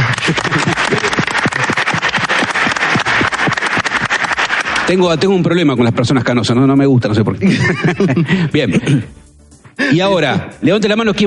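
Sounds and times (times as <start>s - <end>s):
laughter: 0.0s - 4.6s, 7.4s - 9.1s
audience applause: 0.0s - 5.0s
speech: 0.3s - 0.9s, 4.9s - 9.3s, 9.9s - 11.2s.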